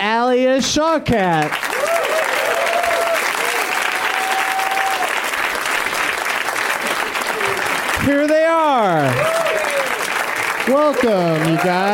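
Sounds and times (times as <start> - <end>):
speech: 0.3 - 1.6, 8.1 - 9.4, 10.7 - 11.9
live comedy-show audience applause welcoming guests: 1.3 - 11.9
person whooping: 1.8 - 5.1, 9.1 - 10.0.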